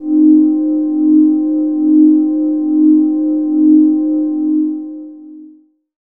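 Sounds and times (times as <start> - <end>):
atmospheric synth pad: 0.0 - 5.6.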